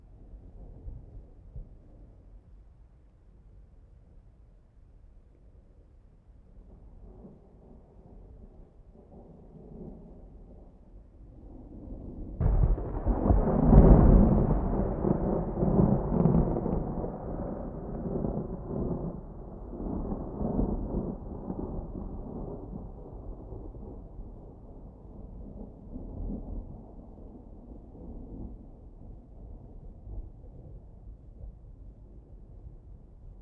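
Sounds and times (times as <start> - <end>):
distant thunder: 12.4 - 26.7.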